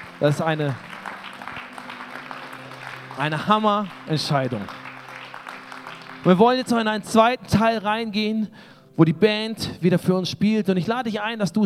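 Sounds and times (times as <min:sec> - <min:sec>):
audience applause: 0:00.0 - 0:07.2
speech: 0:00.2 - 0:00.9, 0:03.2 - 0:04.8, 0:06.2 - 0:11.6.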